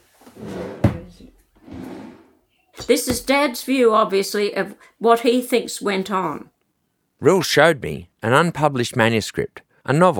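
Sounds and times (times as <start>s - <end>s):
drawer sliding open: 0.3s - 2.3s
speech: 2.9s - 6.6s, 7.2s - 10.1s.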